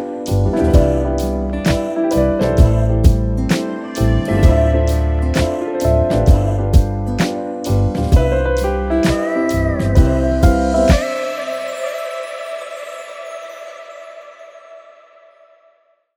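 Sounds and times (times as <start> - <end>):
nostalgic piano beat: 0.0 - 12.3.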